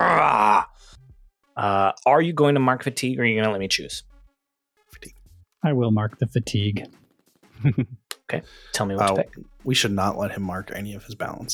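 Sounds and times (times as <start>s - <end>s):
person voicing a growl: 0.0s - 0.8s
speech: 1.6s - 4.1s, 4.9s - 7.0s, 7.6s - 11.5s.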